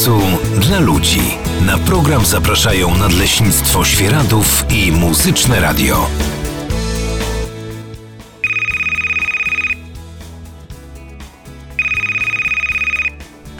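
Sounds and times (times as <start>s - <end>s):
speech: 0.0s - 6.4s
low music: 0.0s - 13.5s
telephone ringing with electronic trill: 8.4s - 9.8s, 11.8s - 13.2s.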